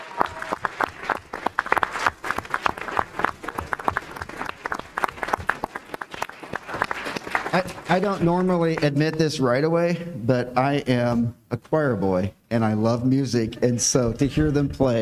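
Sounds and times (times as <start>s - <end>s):
audience applause for the band: 0.0s - 9.2s
speech: 7.6s - 15.0s.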